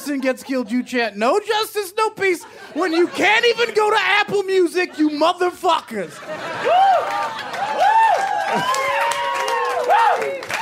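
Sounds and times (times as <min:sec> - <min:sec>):
speech: 0:00.0 - 0:07.2, 0:08.5 - 0:08.9
laughter: 0:00.0 - 0:09.0
audience applauding: 0:06.6 - 0:10.5.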